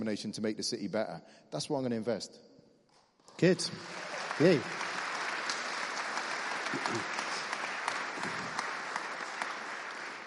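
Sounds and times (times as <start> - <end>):
speech: 0.0 - 2.5, 3.4 - 4.8, 6.7 - 7.2
audience applauding: 3.4 - 10.2.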